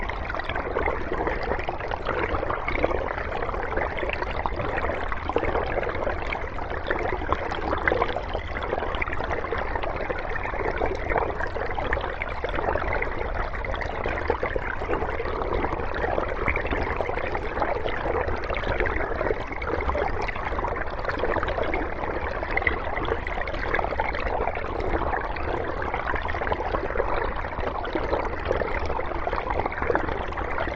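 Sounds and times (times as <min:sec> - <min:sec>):
river heard underwater: 0:00.0 - 0:30.7.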